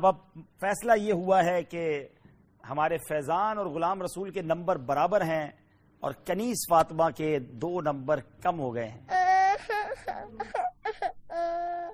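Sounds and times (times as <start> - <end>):
speech: 0.0 - 10.7
young girl crying on a children's show: 9.1 - 11.9.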